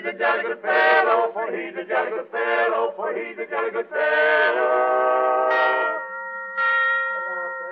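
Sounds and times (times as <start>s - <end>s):
speech: 0.1s - 6.0s
alarm bell ringing: 5.5s - 7.7s.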